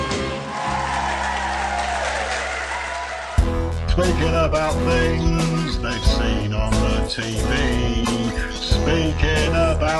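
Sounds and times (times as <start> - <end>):
studio audience applause welcoming the host of TV quiz show Blockbusters: 0.0 - 3.7
speech: 4.0 - 9.9.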